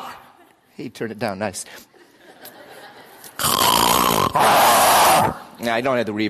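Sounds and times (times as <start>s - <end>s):
speech: 0.8s - 1.9s, 4.4s - 6.2s
laughter: 1.9s - 3.4s
lion roar: 3.5s - 5.4s.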